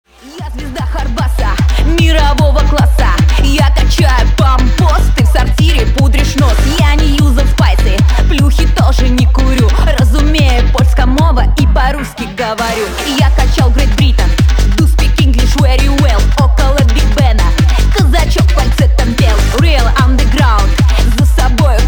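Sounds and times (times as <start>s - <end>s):
hard bass music: 0.0s - 21.8s.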